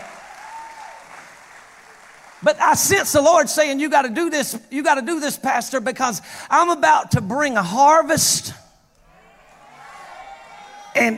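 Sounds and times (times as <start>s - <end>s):
audience clapping: 0.0s - 3.0s
speech: 2.4s - 8.6s.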